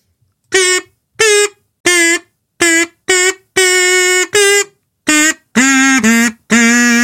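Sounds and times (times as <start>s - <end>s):
kazoo tune: 0.5s - 7.0s.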